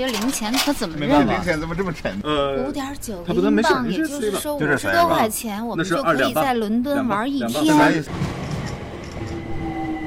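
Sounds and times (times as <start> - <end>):
speech: 0.0 - 8.3
London Underground light rail train: 8.0 - 10.0.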